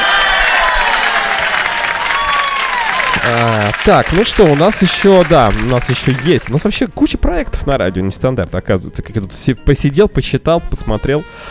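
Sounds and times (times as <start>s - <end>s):
applause: 0.0s - 6.8s
speech: 3.3s - 11.4s.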